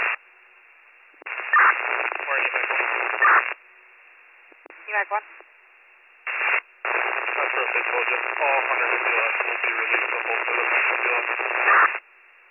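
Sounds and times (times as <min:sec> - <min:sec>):
radio transmission static: 0:00.0 - 0:00.2, 0:01.2 - 0:03.6, 0:04.8 - 0:05.4, 0:06.3 - 0:12.0
speech: 0:05.0 - 0:05.5, 0:07.8 - 0:12.0.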